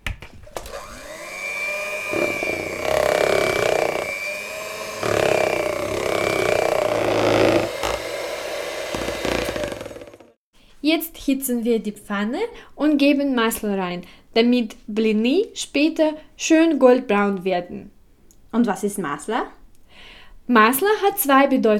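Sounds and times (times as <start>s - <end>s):
electric kitchen mixer running: 0.5s - 10.4s
speech: 10.9s - 17.9s, 18.5s - 21.7s.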